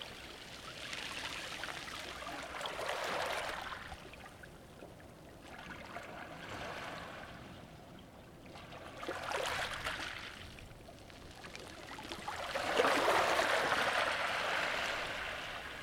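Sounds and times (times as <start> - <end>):
waves with pebbles at Allihies: 0.0 - 4.1, 8.6 - 15.8.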